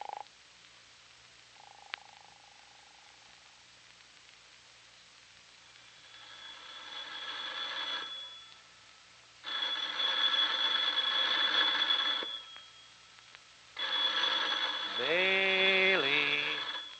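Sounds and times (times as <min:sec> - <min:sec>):
telephone ringing: 0:06.0 - 0:08.6, 0:09.4 - 0:13.0, 0:13.8 - 0:16.9.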